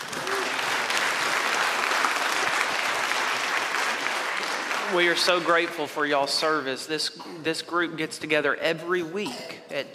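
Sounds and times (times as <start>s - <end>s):
audience clapping: 0.0s - 6.3s
speech: 4.9s - 9.9s.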